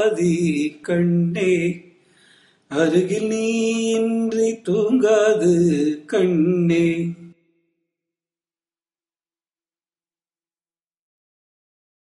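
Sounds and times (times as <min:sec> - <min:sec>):
carnatic music in raga chakravakam: 0:00.0 - 0:07.6.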